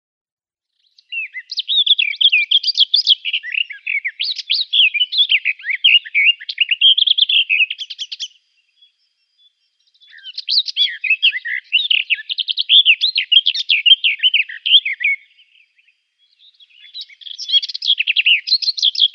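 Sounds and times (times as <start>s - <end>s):
Garden Warbler song: 0.6s - 19.1s.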